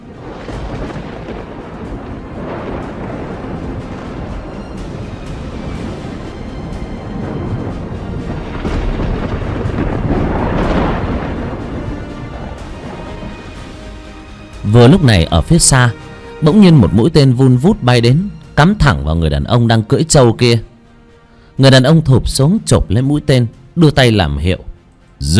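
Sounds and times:
war drums rumbling: 0.0s - 15.0s
deep rolling thunder as a storm gathers: 0.0s - 17.0s
speech: 14.7s - 20.7s, 21.6s - 25.3s.

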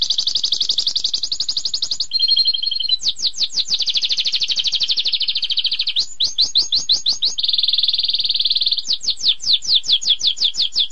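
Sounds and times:
Oriental magpie-robin singing: 0.0s - 10.9s.

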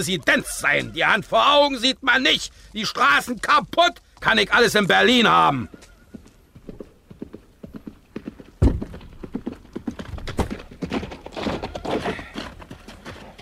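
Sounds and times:
speech: 0.0s - 5.8s
horse hooves clip-clopping on a rough broken street near a city gate: 3.0s - 13.4s.

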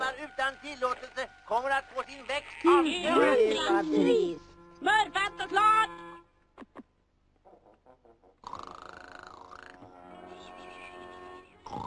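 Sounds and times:
speech: 0.5s - 6.0s
exaggerated cartoon-style snoring: 8.4s - 9.8s, 11.7s - 11.8s.

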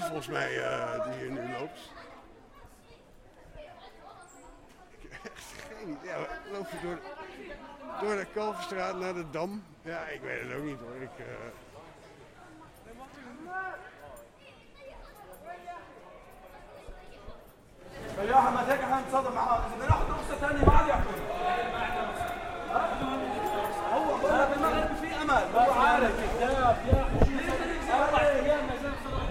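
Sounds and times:
speech: 0.1s - 2.1s, 5.2s - 11.7s, 18.2s - 21.3s
laughter: 4.7s - 7.1s
crowd of demonstrators shouting in street: 21.1s - 29.3s.

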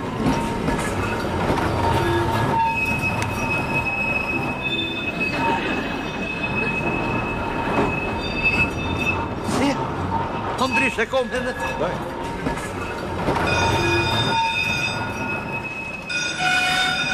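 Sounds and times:
tram wheels rumbling on rails: 0.0s - 17.1s
high-pitched metallic squeals of tram: 0.2s - 9.5s, 12.9s - 17.1s
speech: 11.0s - 12.2s.

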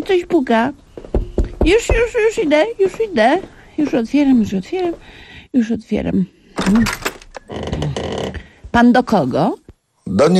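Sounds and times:
speech: 0.1s - 0.8s, 1.6s - 8.0s, 8.8s - 10.3s
dull knocks at a door: 1.0s - 2.7s.

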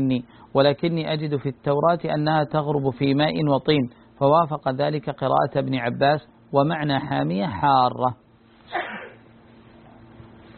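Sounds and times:
speech: 0.0s - 8.9s
faint steady low hum: 0.0s - 10.5s
person sneezing: 8.7s - 9.3s.

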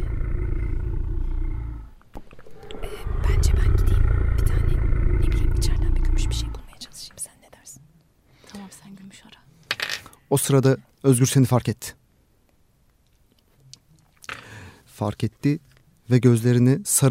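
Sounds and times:
creature growling: 0.0s - 6.8s
speech: 10.3s - 12.0s, 15.0s - 17.0s.

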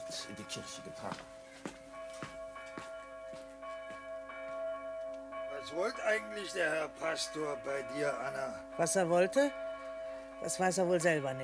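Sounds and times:
church bell ringing: 0.0s - 11.4s
speech: 0.1s - 1.8s, 5.7s - 9.6s, 10.4s - 11.4s.

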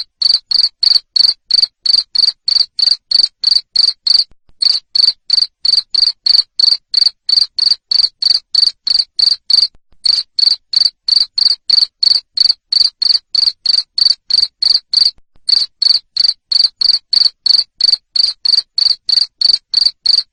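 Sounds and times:
cricket chirping: 0.0s - 20.3s.

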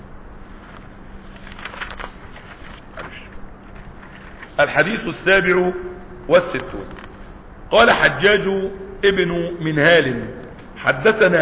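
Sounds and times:
steady low hum: 0.0s - 11.4s
paper pages rustling and shuffling: 0.4s - 4.6s
speech: 4.6s - 7.0s, 7.7s - 11.4s.

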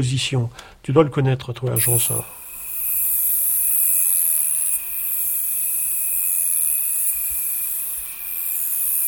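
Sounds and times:
speech: 0.0s - 2.4s
saddle-backed bush cricket Ephippigère carénée singing in waves in reeds: 2.3s - 9.0s.

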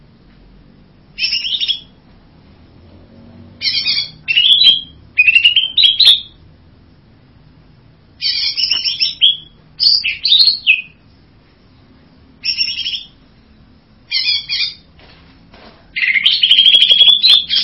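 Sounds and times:
bird buzzy whistled song: 1.1s - 2.0s, 3.6s - 6.4s, 8.2s - 11.1s, 12.4s - 13.2s, 14.1s - 14.9s, 15.9s - 17.6s.

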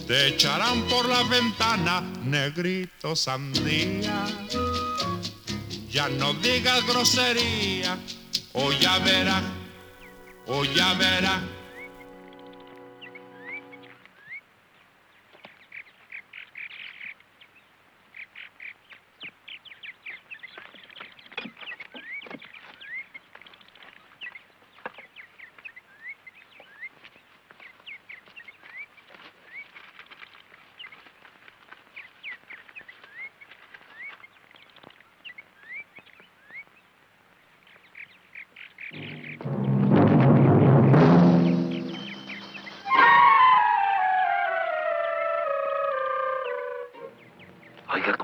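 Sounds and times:
speech: 0.1s - 4.6s, 5.9s - 9.6s, 10.5s - 11.6s
turkey gobbling in rattling bursts: 3.5s - 12.1s, 41.9s - 48.2s
loud full-bodied burst of sound: 38.9s - 43.5s.

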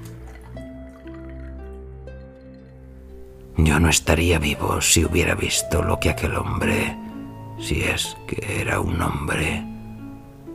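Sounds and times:
drink pouring into a glass: 0.0s - 4.9s
speech: 3.6s - 7.0s, 7.6s - 9.7s.

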